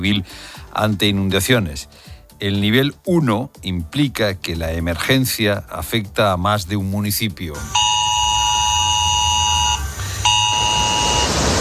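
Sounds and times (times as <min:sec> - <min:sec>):
speech: 0:00.0 - 0:07.8
ES-Alert emergency phone alert tone: 0:07.6 - 0:11.5.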